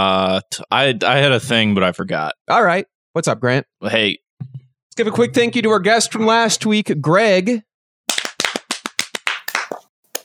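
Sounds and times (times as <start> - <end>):
speech: 0.0 - 7.7
hands clapping: 8.1 - 10.2.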